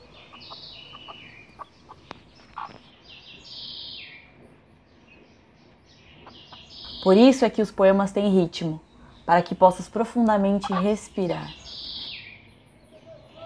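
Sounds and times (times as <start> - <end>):
chicks and brooding hen in backyard: 0.0 - 4.1, 6.1 - 7.0, 10.4 - 12.2
speech: 7.0 - 11.6.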